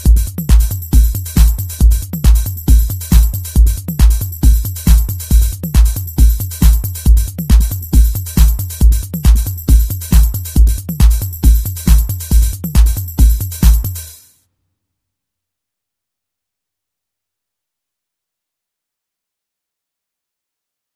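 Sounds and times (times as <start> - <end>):
tech house music: 0.0 - 14.2.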